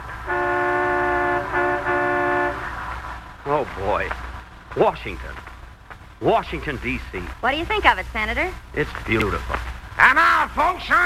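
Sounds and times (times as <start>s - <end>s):
low rumble of street traffic: 0.0s - 11.0s
sightseeing bus horn blasts: 0.2s - 2.9s
speech: 3.6s - 5.5s, 6.2s - 11.0s.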